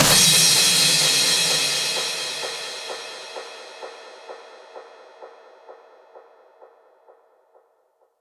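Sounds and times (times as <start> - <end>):
crash cymbal: 0.0 - 6.0.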